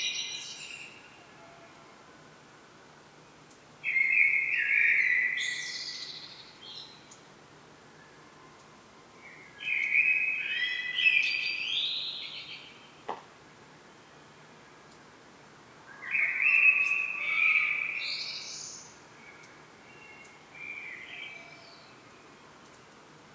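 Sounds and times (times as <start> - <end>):
common blackbird song: 0.0 - 1.3, 3.8 - 7.2, 8.0 - 13.1, 15.9 - 22.9.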